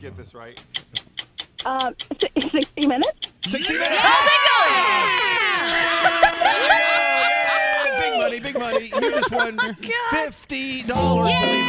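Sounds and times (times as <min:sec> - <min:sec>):
speech: 0:00.0 - 0:06.8, 0:08.2 - 0:11.6
stopwatch ticking: 0:00.4 - 0:03.8
laughter: 0:03.4 - 0:10.0.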